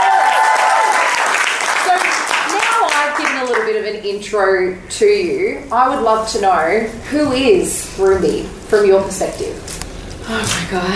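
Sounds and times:
audience applause: 0:00.0 - 0:03.7
speech: 0:04.0 - 0:10.9.

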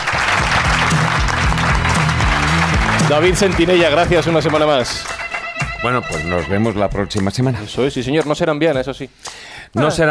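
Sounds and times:
audience applause: 0:00.0 - 0:07.4
low rhythmic musical tones: 0:00.9 - 0:09.2
speech: 0:03.1 - 0:05.2, 0:05.8 - 0:10.1.

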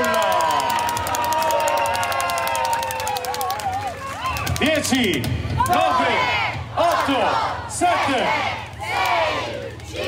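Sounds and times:
roadside crowd applauding bike race: 0:00.0 - 0:05.9
speech: 0:04.8 - 0:06.4, 0:07.1 - 0:09.5.

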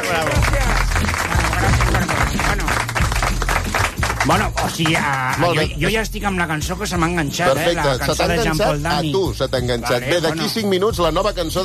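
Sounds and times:
audience applause: 0:00.0 - 0:05.6
speech: 0:00.1 - 0:00.4, 0:04.3 - 0:11.6.

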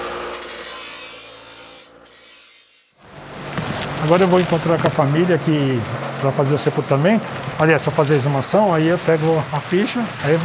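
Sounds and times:
shovel digging into hard earth: 0:03.5 - 0:05.1
speech: 0:04.0 - 0:10.4.

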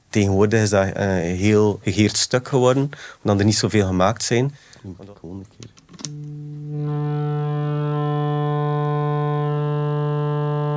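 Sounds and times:
speech: 0:00.1 - 0:07.3
portable synthesizer pure oscillator tone: 0:06.1 - 0:10.7.

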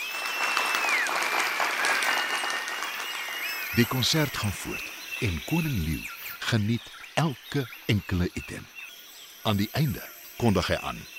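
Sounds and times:
crowd applauding: 0:00.0 - 0:05.6
high whistles: 0:00.0 - 0:06.2
speech: 0:03.8 - 0:08.8, 0:09.4 - 0:11.1.

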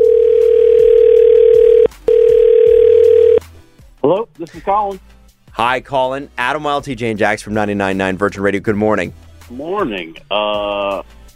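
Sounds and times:
telephone line tones while placing a call: 0:00.0 - 0:03.4
speech: 0:04.1 - 0:11.2.

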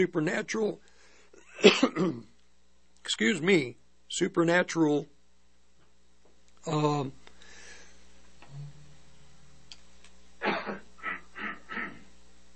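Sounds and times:
speech: 0:00.0 - 0:00.9, 0:01.6 - 0:02.3, 0:03.0 - 0:05.1, 0:06.6 - 0:07.2
coughing: 0:01.5 - 0:02.3, 0:10.4 - 0:12.1
low steady hum: 0:08.0 - 0:11.2
brief vocal sound: 0:08.4 - 0:09.0.

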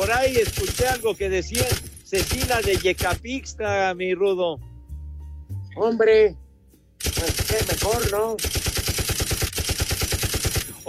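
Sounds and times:
gunfire: 0:00.0 - 0:03.2, 0:07.0 - 0:10.8
speech: 0:00.0 - 0:04.7, 0:05.8 - 0:06.4, 0:07.0 - 0:08.7.

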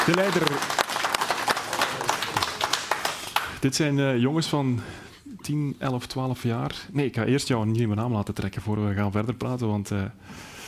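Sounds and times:
speech: 0:00.0 - 0:00.8, 0:03.6 - 0:10.6
crowd clapping for a young competitor at a children's race: 0:00.0 - 0:03.6.

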